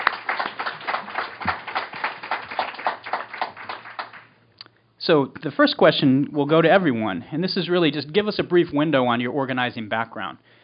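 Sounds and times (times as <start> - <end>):
applause: 0.0 - 4.3
speech: 5.0 - 10.6.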